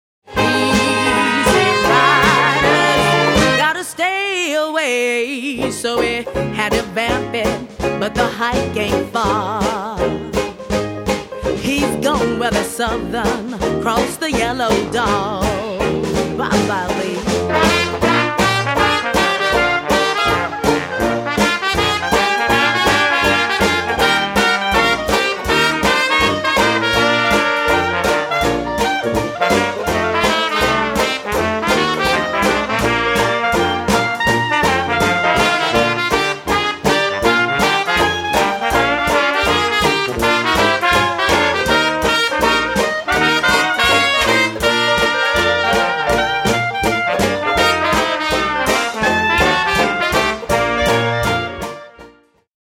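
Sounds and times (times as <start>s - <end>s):
blues music: 0.3s - 52.5s.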